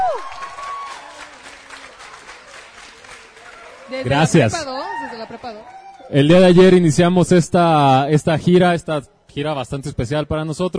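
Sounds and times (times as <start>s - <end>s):
audience applauding: 0.0s - 6.4s
speech: 3.9s - 10.7s.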